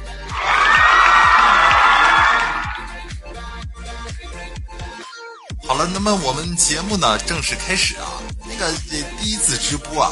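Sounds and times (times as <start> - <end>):
applause: 0.3 - 2.9
cheering: 0.3 - 2.9
speech: 5.8 - 10.0.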